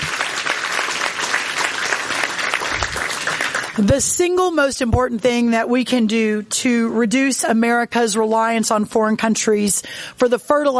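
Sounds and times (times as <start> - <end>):
round of applause: 0.0 - 3.8
speech: 3.8 - 10.7.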